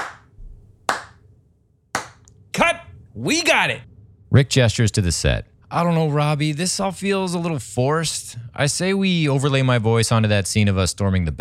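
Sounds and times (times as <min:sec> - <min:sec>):
loud hand clap: 0:00.0 - 0:01.2, 0:02.0 - 0:02.3
speech: 0:03.2 - 0:11.3.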